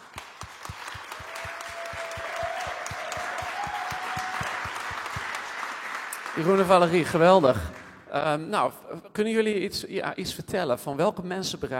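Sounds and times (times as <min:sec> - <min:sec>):
audience applause: 0:00.0 - 0:07.9
speech: 0:06.4 - 0:11.7.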